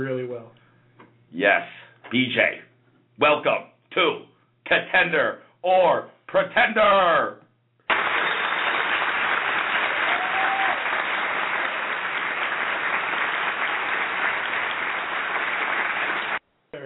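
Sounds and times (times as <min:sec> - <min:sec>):
speech: 0:00.0 - 0:00.6, 0:01.3 - 0:07.4
studio audience clapping: 0:07.9 - 0:16.4.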